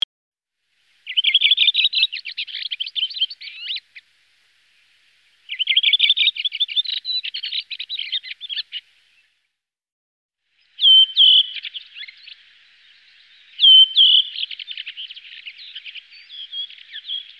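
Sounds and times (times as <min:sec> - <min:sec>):
redwing singing: 0:01.0 - 0:04.1, 0:05.4 - 0:09.4, 0:10.6 - 0:17.3.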